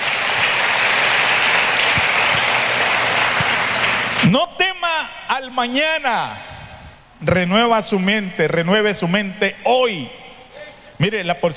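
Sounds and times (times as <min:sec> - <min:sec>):
audience applauding loudly: 0:00.0 - 0:04.4
speech: 0:05.4 - 0:06.5, 0:07.2 - 0:10.2, 0:11.0 - 0:11.5.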